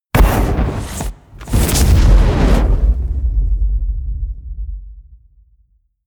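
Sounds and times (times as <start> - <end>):
explosions: 0.0 - 5.8
flame: 0.1 - 4.8.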